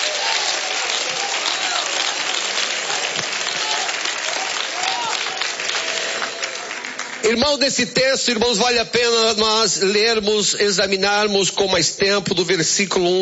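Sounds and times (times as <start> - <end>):
audience applauding: 0.0 - 7.8
speech: 7.2 - 13.2.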